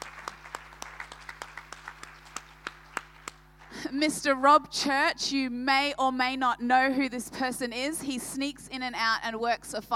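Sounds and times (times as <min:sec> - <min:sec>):
audience applause: 0:00.0 - 0:03.4
speech: 0:03.9 - 0:09.9.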